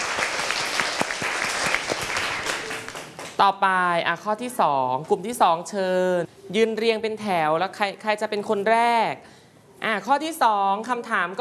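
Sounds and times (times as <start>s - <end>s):
applause from class: 0.0s - 3.4s
speech: 3.4s - 11.4s.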